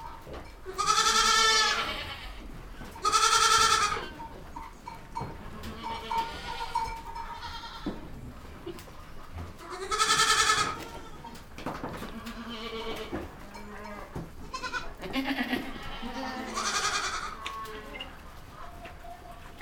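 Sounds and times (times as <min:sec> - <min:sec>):
goats bleating with trembling cries: 0:00.7 - 0:04.2, 0:05.5 - 0:06.8, 0:09.6 - 0:11.4, 0:12.1 - 0:18.1.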